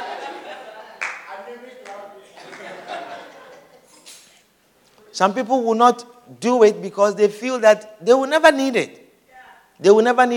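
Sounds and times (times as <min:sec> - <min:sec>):
audience clapping: 0:00.0 - 0:03.1
people laughing: 0:00.0 - 0:04.2
speech: 0:05.2 - 0:09.0, 0:09.8 - 0:10.3.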